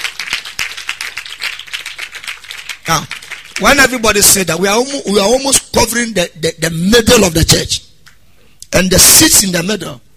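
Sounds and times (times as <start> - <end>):
audience clapping in a church: 0.0 - 4.4
speech: 2.9 - 7.8, 8.7 - 10.0.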